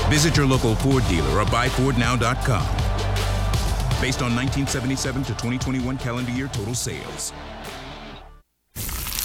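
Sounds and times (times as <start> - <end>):
speech: 0.1 - 3.0, 4.0 - 7.7
crunch of a crunchy cheesy slice: 8.8 - 9.2.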